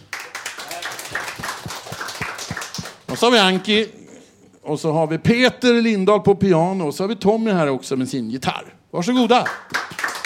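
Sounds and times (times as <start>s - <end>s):
audience applause: 0.0s - 3.1s, 9.7s - 10.2s
speech: 3.1s - 4.0s, 4.7s - 9.8s.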